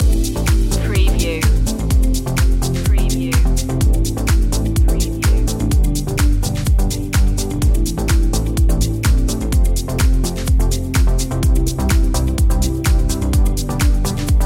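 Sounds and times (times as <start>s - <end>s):
positive music loop: 0.0s - 14.4s.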